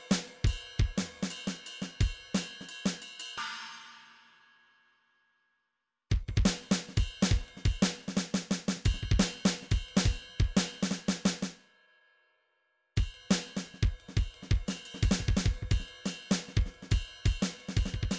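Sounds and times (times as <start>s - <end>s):
MIDI drum pattern: 0.0s - 3.1s, 6.1s - 11.5s, 13.0s - 18.1s.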